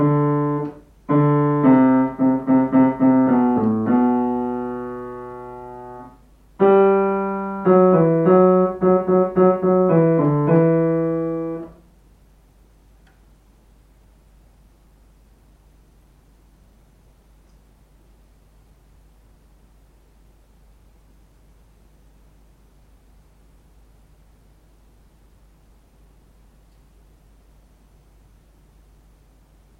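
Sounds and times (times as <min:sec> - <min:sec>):
piano: 0:00.0 - 0:11.9.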